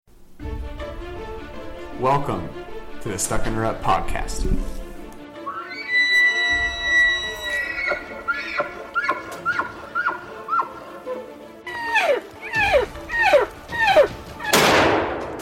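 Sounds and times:
speech: 2.0s - 4.8s
repeated high falling animal calls: 5.4s - 14.6s
hunting rifle gunshot: 14.5s - 15.4s.

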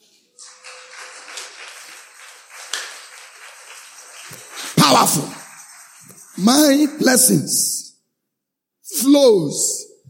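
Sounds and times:
audience clapping: 0.0s - 7.7s
speech: 4.9s - 5.4s, 6.4s - 7.8s, 9.2s - 9.8s.

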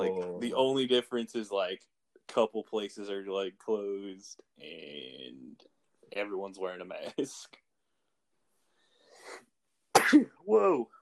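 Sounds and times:
speech: 0.4s - 7.6s, 10.1s - 10.9s
sneeze: 10.0s - 10.4s.

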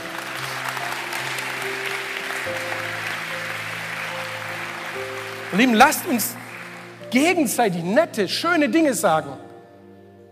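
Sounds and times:
audience applause: 0.0s - 7.6s
speech: 5.5s - 6.5s, 7.1s - 9.4s.

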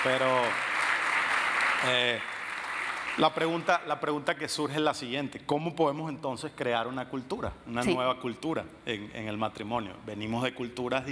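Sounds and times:
speech: 0.0s - 0.7s, 1.8s - 2.3s, 3.2s - 11.1s
congregation applause in a church: 0.0s - 4.0s.

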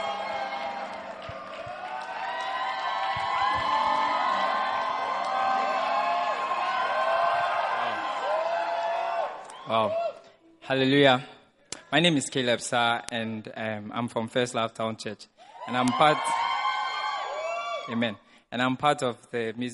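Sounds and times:
church congregation cheering and whooping in praise: 0.0s - 10.2s, 15.6s - 18.0s
speech: 9.7s - 10.1s, 10.7s - 11.3s, 11.9s - 16.4s, 17.9s - 19.7s.

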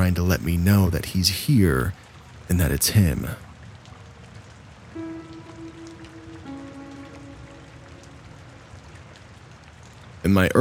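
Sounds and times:
speech: 0.0s - 3.4s, 10.2s - 10.5s
steady rain pattering on a surface: 0.0s - 10.5s
low humming drone: 4.9s - 9.4s.

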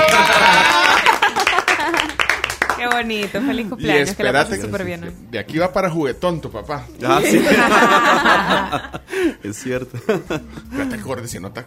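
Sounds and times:
laughter: 0.0s - 2.2s, 7.1s - 11.0s
hands clapping in applause: 0.0s - 3.4s
speech: 3.0s - 11.6s.

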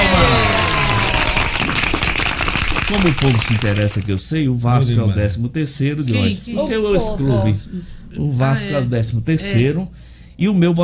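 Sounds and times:
applause: 0.0s - 4.1s
speech: 2.9s - 10.8s.

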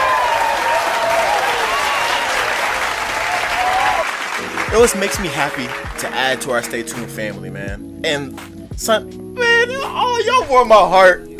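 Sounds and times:
round of applause: 0.0s - 6.6s
speech: 4.7s - 11.3s.

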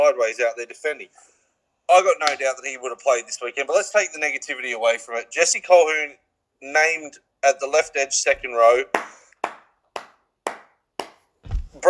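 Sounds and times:
speech: 0.1s - 9.2s
hand claps: 8.4s - 11.8s.

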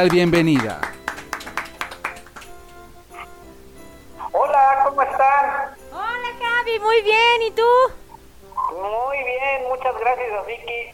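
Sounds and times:
speech: 0.0s - 0.9s, 6.8s - 8.0s, 8.8s - 10.9s
applause: 0.0s - 2.7s
soft tonal background: 2.6s - 10.3s.

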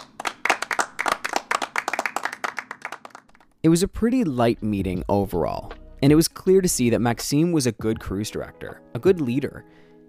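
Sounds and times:
crowd clapping to welcome a new cruise director at a crew meeting: 0.0s - 3.5s
speech: 3.6s - 9.8s.

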